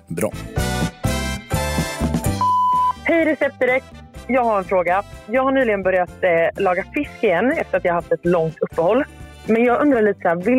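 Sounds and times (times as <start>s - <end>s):
speech: 0.1s - 1.0s, 3.1s - 10.5s
answering machine beep: 2.4s - 3.0s.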